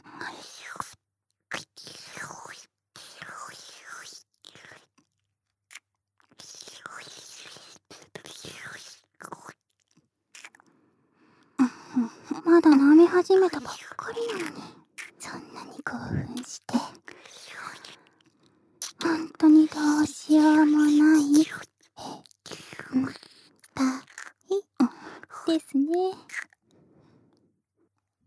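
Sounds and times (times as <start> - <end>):
ear licking: 8.7 - 10.7, 11.6 - 26.6.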